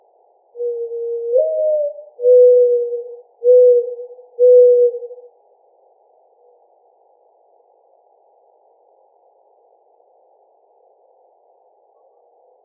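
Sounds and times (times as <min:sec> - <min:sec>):
mourning dove cooing: 0:00.6 - 0:05.3.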